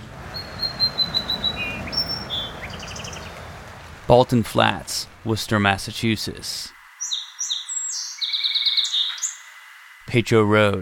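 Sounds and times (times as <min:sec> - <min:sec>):
Song Sparrow singing: 0:00.3 - 0:03.4, 0:07.0 - 0:09.7
background hiss: 0:01.9 - 0:10.7
speech: 0:04.1 - 0:06.8, 0:10.1 - 0:10.7.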